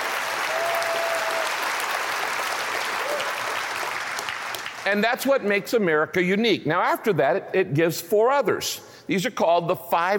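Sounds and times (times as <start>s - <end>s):
audience applause: 0.0s - 4.9s
speech: 4.9s - 10.1s.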